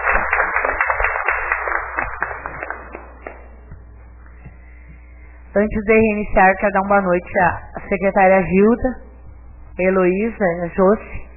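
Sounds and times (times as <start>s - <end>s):
crowd applauding: 0.0s - 3.6s
speech: 5.6s - 9.0s, 9.8s - 11.2s.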